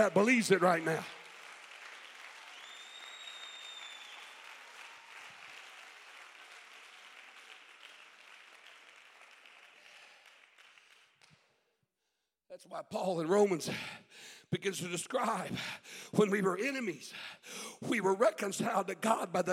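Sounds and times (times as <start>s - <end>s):
speech: 0.0s - 1.2s, 12.6s - 19.5s
audience clapping hands: 0.0s - 11.6s.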